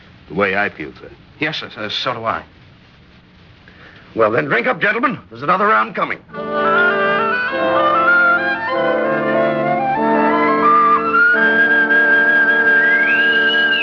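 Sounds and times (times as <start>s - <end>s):
speech: 0.3s - 2.6s, 4.1s - 6.4s
bosun's whistle piping aboard: 6.3s - 13.8s
steady backdrop of sustained tones: 6.3s - 13.8s.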